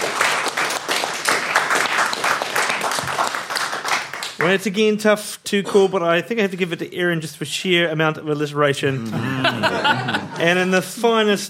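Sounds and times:
audience applause: 0.0 - 4.5
speech: 4.4 - 11.4
laughter: 8.9 - 11.4.

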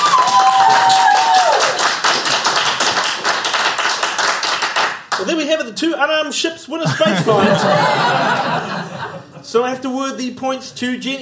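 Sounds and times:
audience clapping to vote: 0.0 - 5.4
speech: 5.5 - 11.2
laughter: 6.8 - 9.5.

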